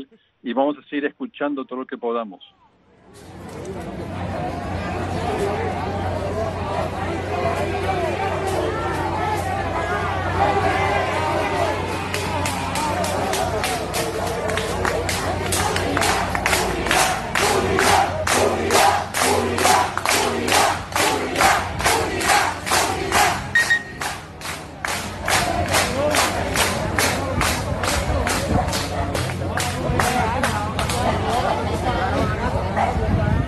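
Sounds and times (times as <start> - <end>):
speech: 0.0 - 4.6
large protest crowd chanting in unison: 4.6 - 33.0.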